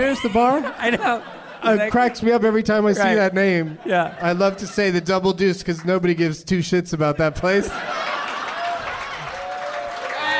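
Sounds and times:
laughter: 0.0 - 6.4, 7.2 - 9.8
speech: 0.0 - 8.0
voices and cheers: 7.7 - 10.3
audience applauding a joke: 7.8 - 10.3.

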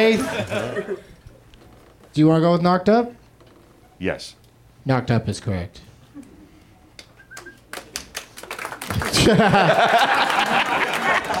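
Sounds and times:
speech: 0.0 - 1.1, 2.2 - 3.2, 4.0 - 5.9, 9.0 - 11.3
laughter: 0.0 - 1.3, 8.8 - 11.3
light scattered clapping from a small group: 7.0 - 11.3.

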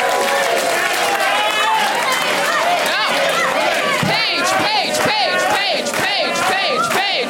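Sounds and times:
audience chanting a name in unison: 0.1 - 7.2.

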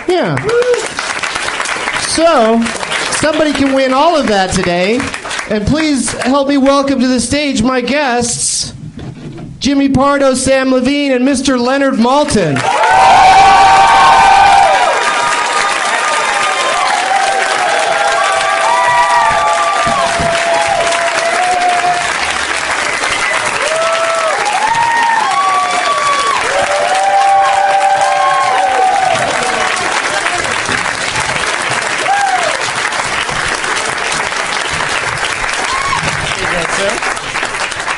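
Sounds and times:
audience clapping as guests are welcomed on stage: 0.0 - 7.2, 12.5 - 37.9
speech: 0.1 - 0.8, 2.2 - 8.8, 9.6 - 13.4
audience shouts and whoops: 0.4 - 0.9, 12.6 - 22.2, 23.4 - 29.8, 32.0 - 32.7, 35.6 - 36.2.

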